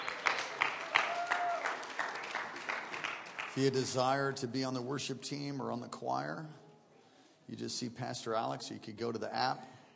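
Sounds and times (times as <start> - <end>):
audience applause: 0.0 - 3.7
speech: 3.6 - 6.6, 7.5 - 9.8.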